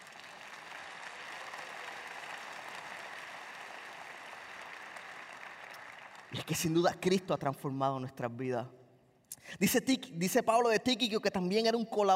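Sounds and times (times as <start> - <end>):
audience applause: 0.0 - 6.6
speech: 6.3 - 8.8, 9.6 - 12.1.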